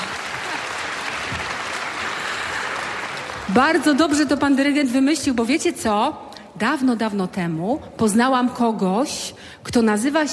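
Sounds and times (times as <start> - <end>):
applause for the conductor: 0.0 - 4.0
speech: 3.5 - 10.3.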